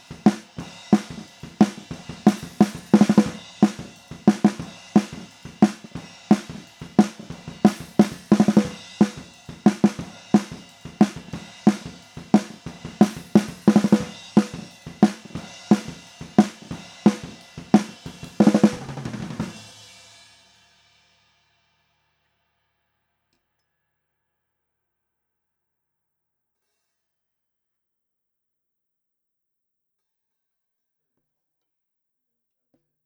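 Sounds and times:
snare drums recorded with an SM57 microphone: 0.0 - 20.1.

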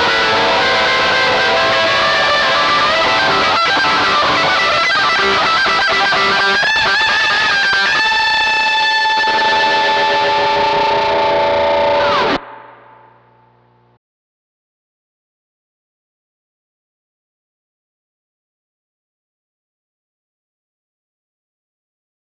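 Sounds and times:
electric guitar through studio preamp: 0.0 - 14.0.

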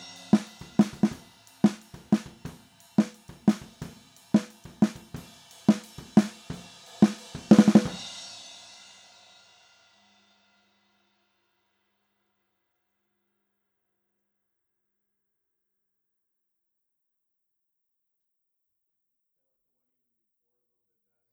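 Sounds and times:
snare drum recorded with SM57 microphone: 0.0 - 8.4.

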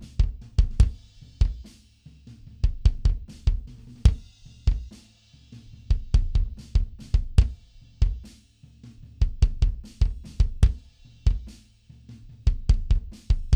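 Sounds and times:
mono bass drum: 0.0 - 13.5.

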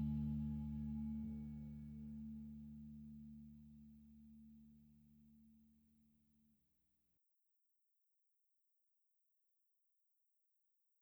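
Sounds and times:
bass recorded with SM57 microphone: 0.0 - 6.1.

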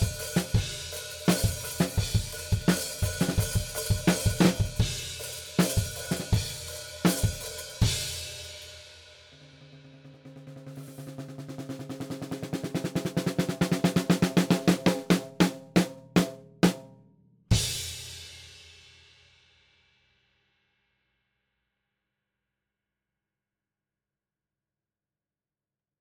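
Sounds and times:
drums: 0.0 - 20.1.

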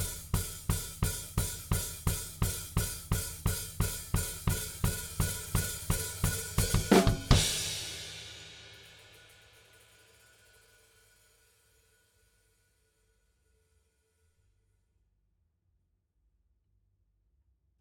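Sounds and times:
drums: 0.0 - 11.8.

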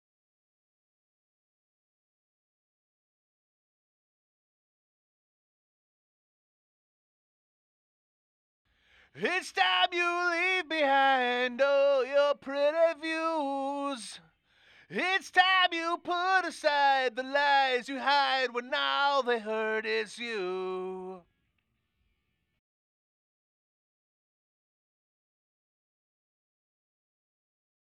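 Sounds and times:
vocal verses: 9.1 - 21.3.

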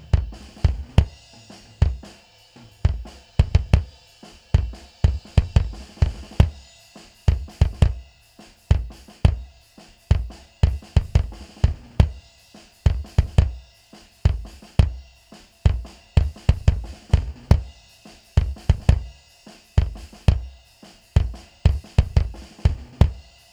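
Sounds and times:
bass drum: 0.0 - 2.2, 2.8 - 6.6, 7.3 - 8.1, 8.7 - 9.5, 10.1 - 12.2, 12.8 - 13.6, 14.2 - 15.0, 15.7 - 17.8, 18.4 - 19.2, 19.8 - 20.6, 21.2 - 23.2
drums: 0.0 - 23.5.

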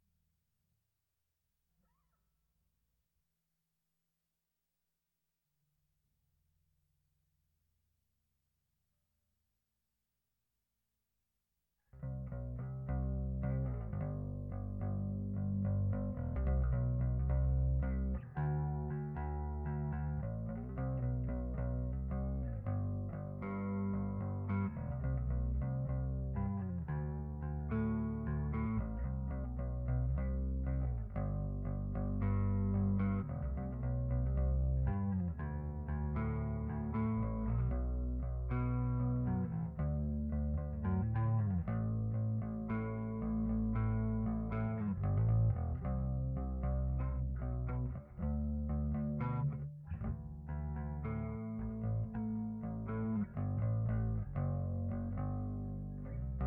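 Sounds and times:
bass: 11.8 - 56.4.

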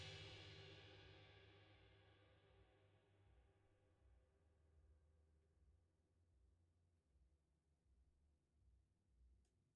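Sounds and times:
drums: 0.0 - 2.0.

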